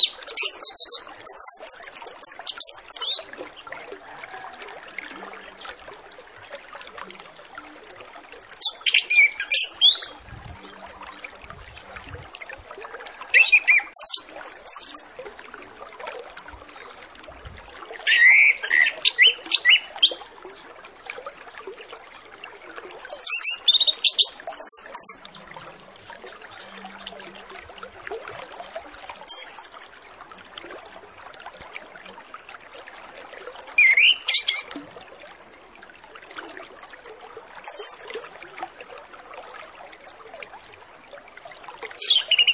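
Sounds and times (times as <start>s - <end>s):
Orange-headed Thrush song: 0.0s - 3.2s, 8.6s - 10.2s, 13.3s - 15.1s, 18.1s - 20.2s, 23.1s - 25.4s, 29.3s - 29.9s, 33.8s - 34.7s, 37.7s - 38.3s, 42.0s - 42.5s.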